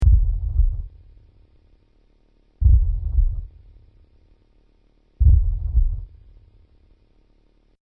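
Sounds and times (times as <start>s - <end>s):
heartbeat: 0.0s - 1.2s, 2.6s - 4.0s, 5.2s - 6.6s.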